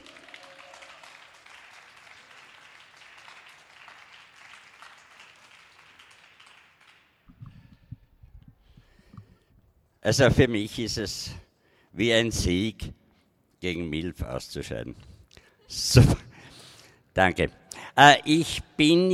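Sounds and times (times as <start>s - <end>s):
applause for a poetry slam performer: 0.0s - 8.0s
speech: 10.0s - 11.4s, 12.0s - 13.0s, 13.6s - 15.1s, 15.7s - 16.2s, 17.2s - 19.1s.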